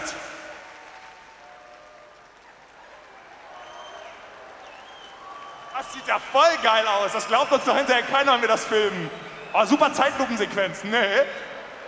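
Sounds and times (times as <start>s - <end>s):
audience clapping slowly and quietly: 0.0s - 6.9s
speech: 5.8s - 11.5s.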